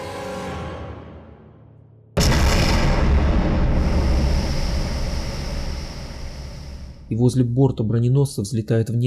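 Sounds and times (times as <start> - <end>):
torpedo hit explosion roar: 2.2 - 7.4
speech: 7.1 - 9.0.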